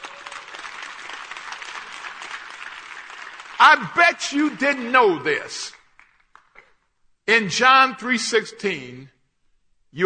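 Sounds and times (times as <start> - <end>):
audience clapping: 0.0 - 6.8
speech: 3.6 - 5.8, 7.3 - 9.2.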